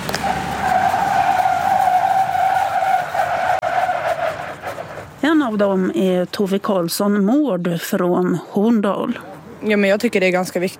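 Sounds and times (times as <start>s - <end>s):
tires squealing during braking on icy track: 0.0s - 5.3s
speech: 5.5s - 10.7s.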